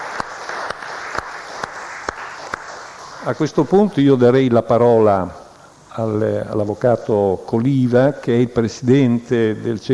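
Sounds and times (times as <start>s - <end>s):
crowd applause: 0.0s - 3.5s
speech: 3.2s - 5.4s, 6.0s - 9.9s.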